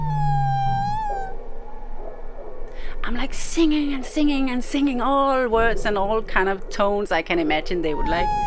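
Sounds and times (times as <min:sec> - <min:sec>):
whale moaning call: 0:00.0 - 0:01.4, 0:08.0 - 0:08.4
speech: 0:03.0 - 0:08.4.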